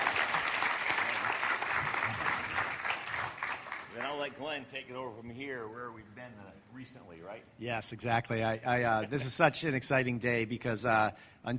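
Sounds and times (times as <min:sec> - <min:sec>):
audience clapping in welcome: 0:00.0 - 0:04.5
speech: 0:04.2 - 0:11.5.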